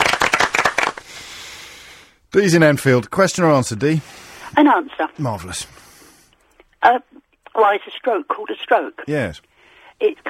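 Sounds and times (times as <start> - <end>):
round of applause: 0.0 - 1.2
speech: 2.3 - 5.8, 6.8 - 10.2.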